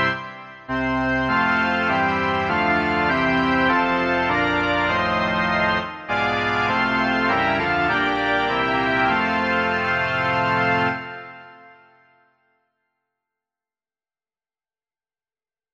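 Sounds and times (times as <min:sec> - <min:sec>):
organ: 0:00.0 - 0:12.1.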